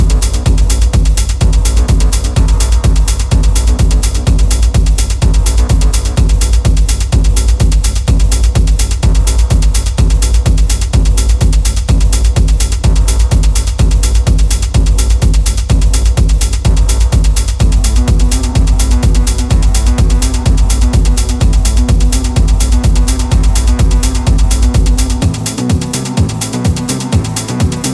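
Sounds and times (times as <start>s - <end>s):
Moog synthesizer thunder: 0.0s - 27.8s.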